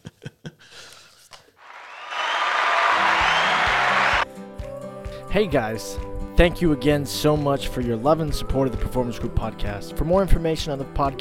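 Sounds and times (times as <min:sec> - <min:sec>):
applause sound effect: 0:01.6 - 0:04.2
speech: 0:05.3 - 0:11.1.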